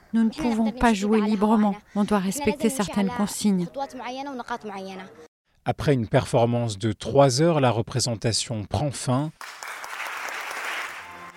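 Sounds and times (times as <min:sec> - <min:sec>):
speech: 0:00.1 - 0:09.8
theatre audience applause: 0:09.4 - 0:11.3.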